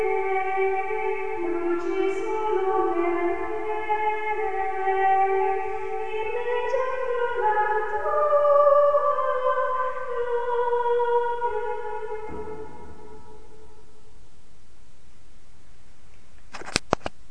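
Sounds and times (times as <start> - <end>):
sopranos singing: 0.0 - 13.6.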